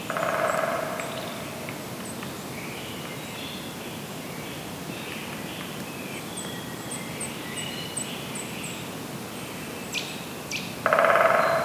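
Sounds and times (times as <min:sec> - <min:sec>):
woodpeckers drumming in the distance: 0:00.1 - 0:02.3, 0:10.8 - 0:11.6.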